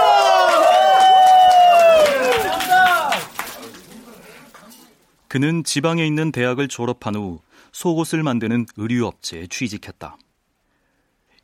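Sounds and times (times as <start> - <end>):
small group cheering loudly with whoops: 0.0 - 4.4
scattered claps: 0.0 - 4.7
speech: 5.3 - 10.2.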